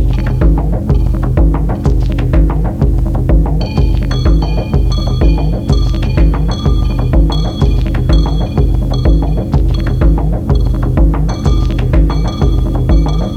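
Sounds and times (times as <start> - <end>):
808 kick drum: 0.0 - 13.3.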